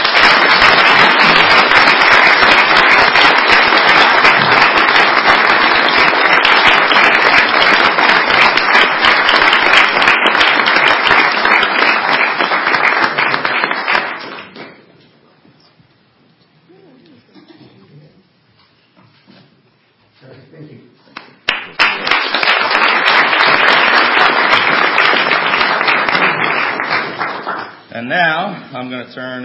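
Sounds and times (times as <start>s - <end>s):
audience applause: 0.0s - 14.8s, 21.4s - 27.9s
speech: 28.8s - 29.4s.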